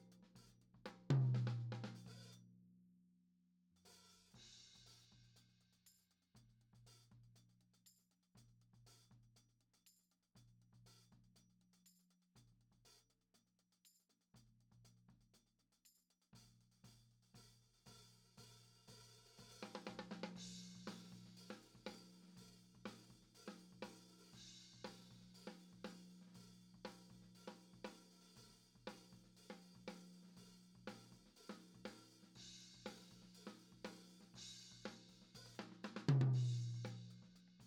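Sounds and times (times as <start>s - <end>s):
high tom drum: 0.9s - 2.3s, 17.9s - 37.6s.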